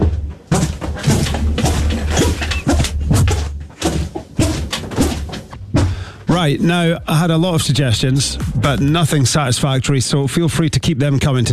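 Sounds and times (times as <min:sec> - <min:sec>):
trainers squeaking in a walking rhythm: 0:00.0 - 0:06.0
dull thudding footsteps: 0:00.0 - 0:06.5
speech: 0:06.4 - 0:11.5.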